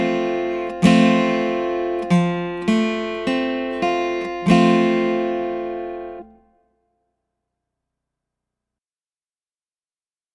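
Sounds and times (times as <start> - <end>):
F chord built from two three and four notes: 0.0 - 6.4.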